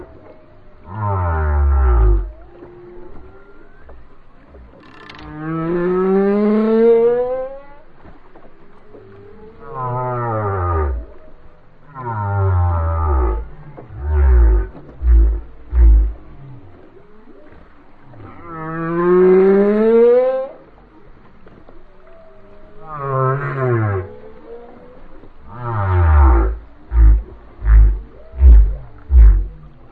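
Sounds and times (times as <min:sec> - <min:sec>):
whale song: 0:00.0 - 0:29.9.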